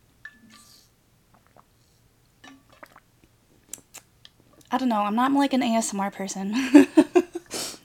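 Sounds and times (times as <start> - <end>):
person drinking water: 0.5 - 4.7
speech: 4.7 - 7.2.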